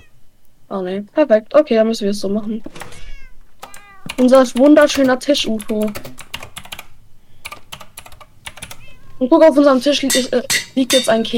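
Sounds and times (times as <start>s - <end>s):
speech: 0.7s - 2.9s, 4.2s - 6.1s, 9.2s - 11.3s
computer keyboard keys clattering: 3.6s - 8.8s.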